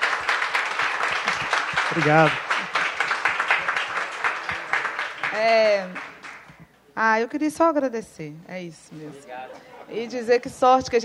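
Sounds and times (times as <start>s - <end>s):
audience applause: 0.0s - 6.6s
speech: 2.0s - 2.5s, 5.4s - 6.1s, 7.0s - 11.0s.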